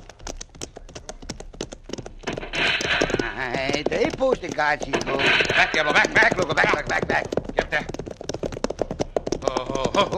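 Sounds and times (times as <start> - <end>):
hooves of ridden horses clip-clopping: 0.0 - 10.1
rushing noise: 2.2 - 3.5, 5.0 - 6.3
speech: 3.4 - 8.0, 9.4 - 10.1.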